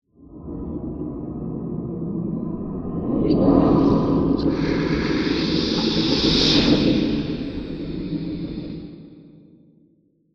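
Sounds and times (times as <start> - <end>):
eerie science fiction space ghost sound: 1.2 - 9.2.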